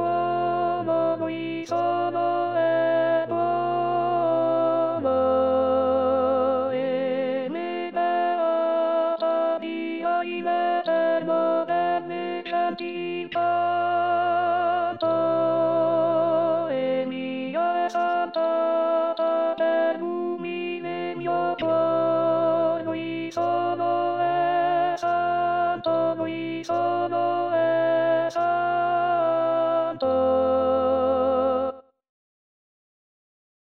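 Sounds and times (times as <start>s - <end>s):
contralto voices singing: 0.0s - 31.7s.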